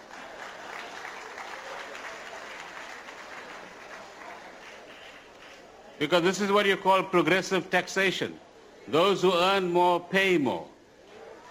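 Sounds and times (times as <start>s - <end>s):
audience applause: 0.0s - 5.3s
speech: 6.0s - 10.7s.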